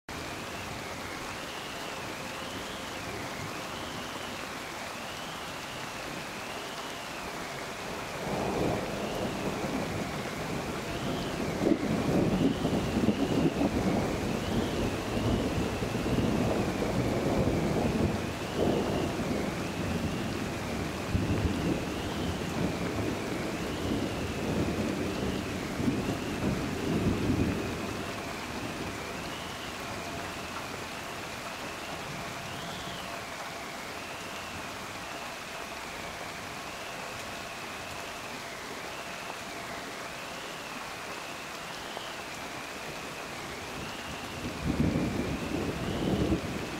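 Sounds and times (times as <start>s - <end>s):
rainstorm: 0.1s - 46.7s.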